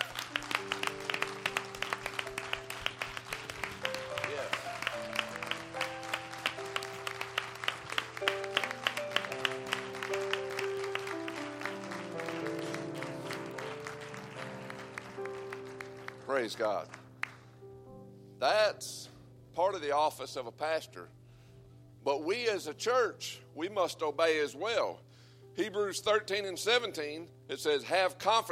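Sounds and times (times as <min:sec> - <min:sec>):
audience hand clapping: 0:00.0 - 0:17.6
speech: 0:16.4 - 0:17.0, 0:18.4 - 0:21.2, 0:22.1 - 0:25.0, 0:25.6 - 0:28.5.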